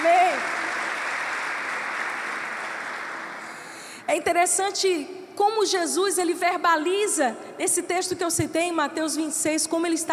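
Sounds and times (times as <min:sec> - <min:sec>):
audience applause: 0:00.0 - 0:03.9
speech: 0:04.1 - 0:10.1.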